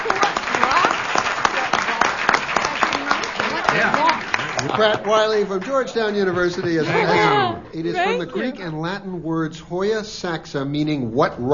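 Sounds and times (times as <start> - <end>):
audience applause: 0.0 - 7.6
laughter: 3.4 - 8.7
speech: 4.7 - 11.5.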